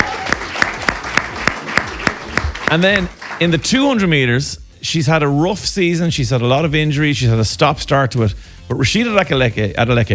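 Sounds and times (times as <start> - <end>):
hand clapping round of applause: 0.0 - 3.6
speech: 2.7 - 10.1.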